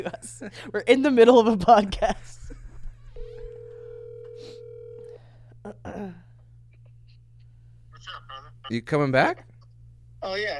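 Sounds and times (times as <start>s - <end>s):
speech: 0.0s - 2.5s, 5.6s - 6.2s, 8.1s - 9.5s, 10.2s - 10.5s
outgoing Facebook call ring tone: 3.2s - 5.3s.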